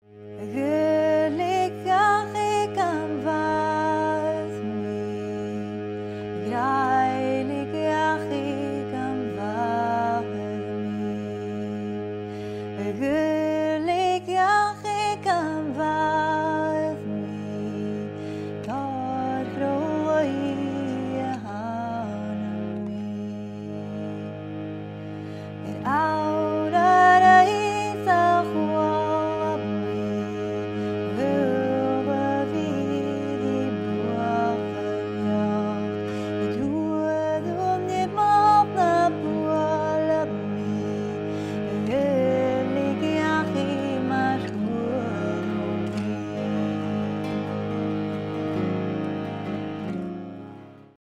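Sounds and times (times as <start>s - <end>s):
Irish song: 0.0s - 50.9s.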